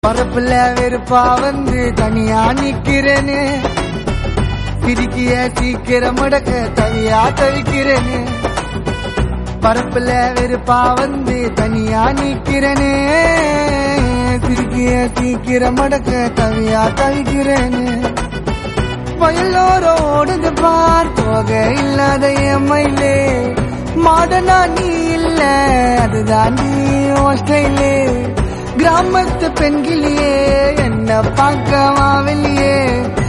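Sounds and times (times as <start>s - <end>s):
Tamil song: 0.0s - 33.2s.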